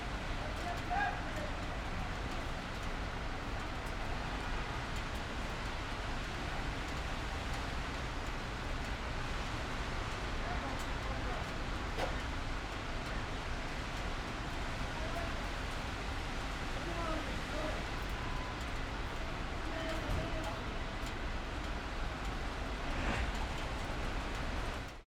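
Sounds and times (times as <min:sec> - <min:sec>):
city traffic in Istanbul: 0:00.0 - 0:25.0
light rain in Istanbul: 0:00.0 - 0:25.0.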